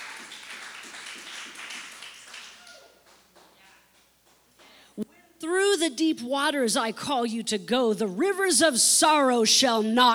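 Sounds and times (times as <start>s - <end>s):
audience clapping: 0.0s - 4.8s
speech: 5.5s - 10.1s.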